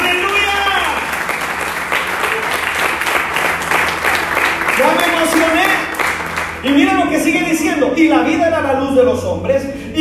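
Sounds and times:
audience applause: 0.0 - 6.8
speech: 6.7 - 10.0.

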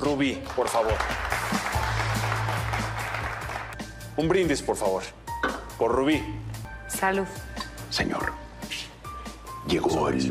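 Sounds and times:
speech: 0.1 - 1.5, 4.2 - 5.2, 5.8 - 8.4, 9.7 - 10.2
warm audience applause: 0.4 - 3.8.

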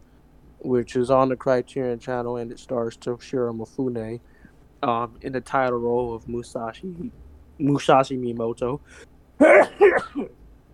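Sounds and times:
speech: 0.6 - 10.4
sneeze: 9.4 - 10.3.

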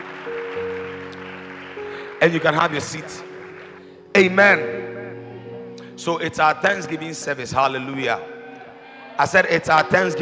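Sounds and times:
audience clapping: 0.0 - 4.3
speech: 2.2 - 3.3, 4.2 - 4.9, 6.0 - 8.3, 9.2 - 10.2.

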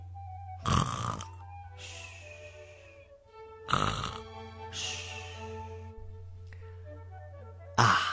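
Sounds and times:
little monkey snoring in sleep: 0.6 - 1.4, 3.6 - 4.3, 7.8 - 8.1.

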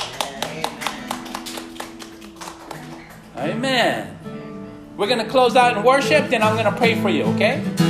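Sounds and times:
audience clapping: 0.0 - 3.5
speech: 3.4 - 4.2, 5.0 - 7.8.

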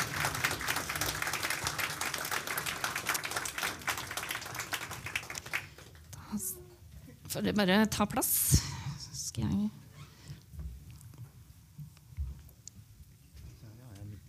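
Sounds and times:
audience applause: 0.0 - 6.0
speech: 7.3 - 8.6.

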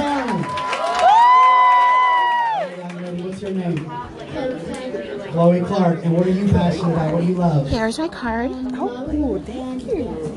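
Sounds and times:
crowd cheering for a young child model: 0.0 - 3.6
person whooping: 0.5 - 2.7
speech: 5.4 - 10.3.

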